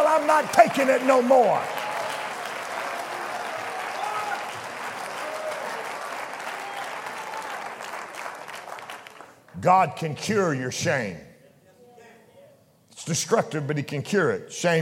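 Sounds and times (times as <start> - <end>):
audience clapping hands: 0.0 - 9.6
speech: 0.3 - 1.8, 9.6 - 11.3, 13.0 - 14.8.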